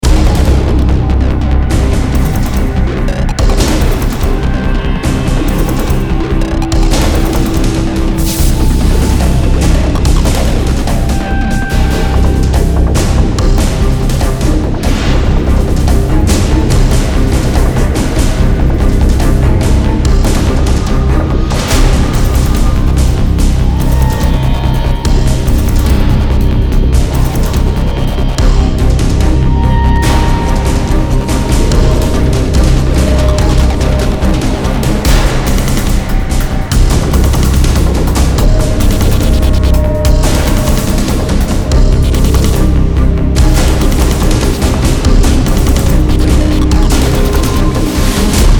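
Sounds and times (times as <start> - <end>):
battle music: 0.0 - 48.5.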